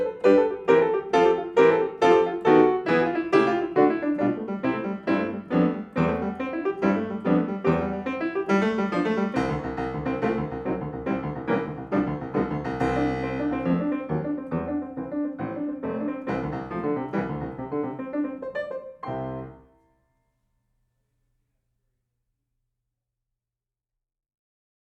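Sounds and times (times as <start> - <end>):
tarantella on piano: 0.0 - 19.7.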